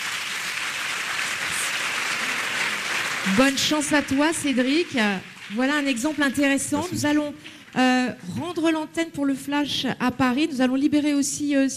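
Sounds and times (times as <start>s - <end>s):
audience applause: 0.0s - 7.8s
speech: 3.2s - 11.7s.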